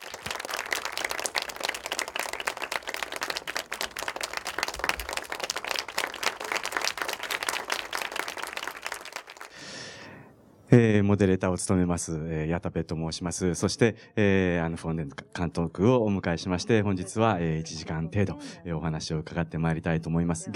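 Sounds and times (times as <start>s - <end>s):
audience applause welcoming guests: 0.0s - 9.6s
speech: 10.7s - 20.5s.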